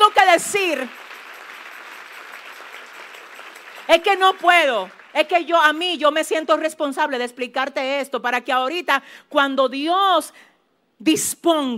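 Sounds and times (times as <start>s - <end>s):
audience applause: 0.0s - 5.8s
speech: 0.4s - 1.1s, 3.9s - 11.7s.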